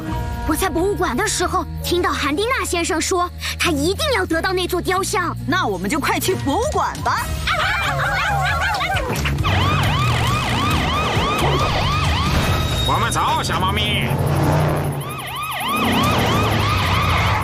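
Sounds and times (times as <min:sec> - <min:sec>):
speech: 0:00.5 - 0:09.3, 0:12.9 - 0:14.6
laughter: 0:07.5 - 0:09.6
laser security alarm siren wailing: 0:09.3 - 0:17.4.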